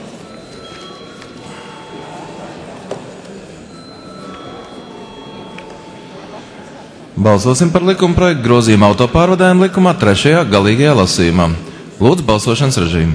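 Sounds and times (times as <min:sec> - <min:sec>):
parliament chamber bell ringing: 0:00.0 - 0:07.2
murmur of voices: 0:00.0 - 0:13.1
speech: 0:07.2 - 0:13.1.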